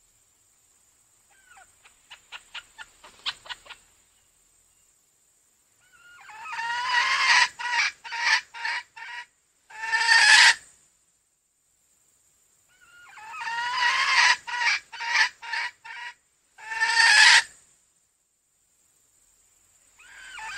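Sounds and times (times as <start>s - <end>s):
female junglefowl clucking: 1.3s - 3.9s, 5.8s - 10.6s, 12.7s - 17.5s, 20.0s - 20.5s.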